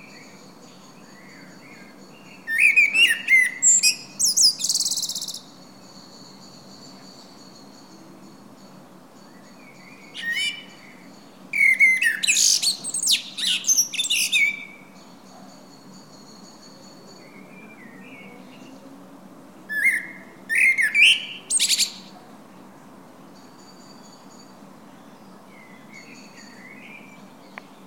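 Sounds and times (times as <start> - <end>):
common blackbird singing: 0.0 - 8.1, 9.2 - 18.8, 19.7 - 22.2, 24.9 - 27.8.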